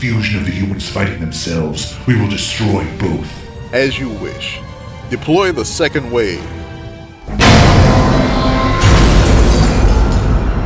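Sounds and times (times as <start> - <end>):
speech: 0.0 - 6.6
heavy booming crashes of a Tyrannosaurus through large city buildings: 7.3 - 10.6.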